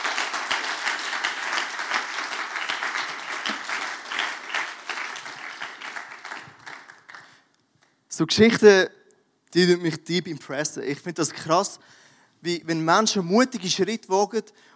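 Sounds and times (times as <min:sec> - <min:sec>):
crowd applause: 0:00.0 - 0:07.4
speech: 0:08.2 - 0:14.7.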